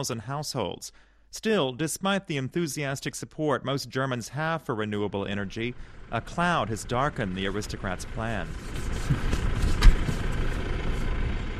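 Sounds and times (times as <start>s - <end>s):
speech: 0.0s - 9.3s
tractor engine running in rural fields near Feldkirchen: 5.2s - 11.5s
car passing: 5.7s - 11.5s.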